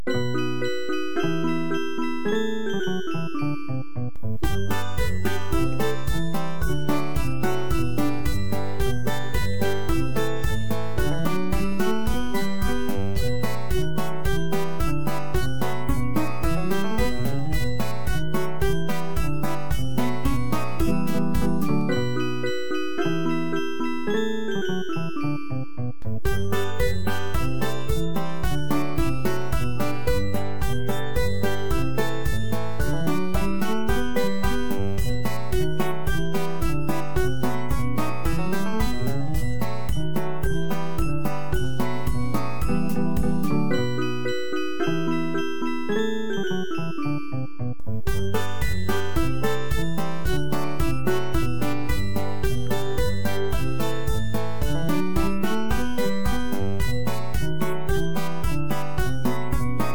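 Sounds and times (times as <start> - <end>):
instrumental music: 0.0 - 59.9.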